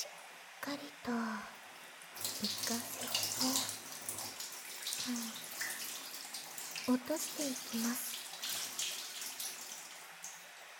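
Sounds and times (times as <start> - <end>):
speech: 0.7 - 1.6, 6.9 - 8.1
warm water rinsing hair: 2.1 - 10.7.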